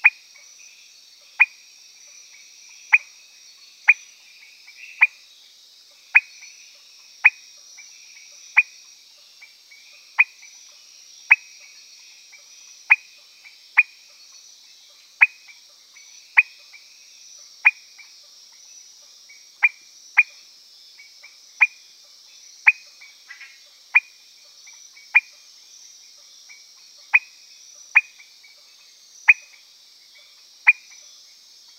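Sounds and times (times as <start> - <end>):
high insect hum: 0.0 - 31.7
Peters' thin-toed frog calling: 1.3 - 1.6, 2.8 - 3.2, 3.8 - 4.1, 4.7 - 5.2, 6.1 - 6.5, 7.2 - 7.4, 8.4 - 8.8, 10.2 - 10.5, 15.2 - 15.6, 16.3 - 16.9, 17.6 - 18.1, 19.6 - 20.4, 21.2 - 21.8, 22.6 - 25.4, 26.5 - 28.3, 29.2 - 29.6, 30.6 - 31.0.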